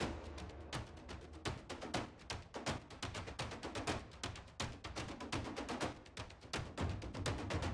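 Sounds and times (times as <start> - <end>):
interactive music: 0.0 - 7.7.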